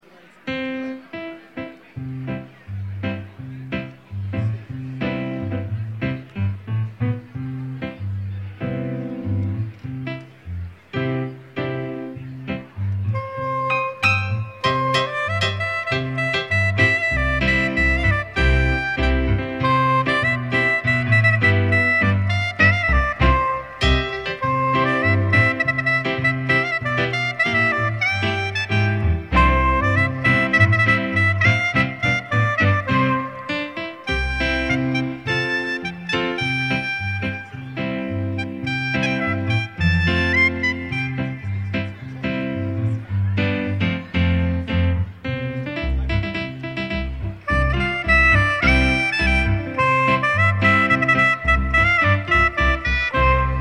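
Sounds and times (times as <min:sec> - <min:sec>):
wedding march music: 0:00.0 - 0:53.6.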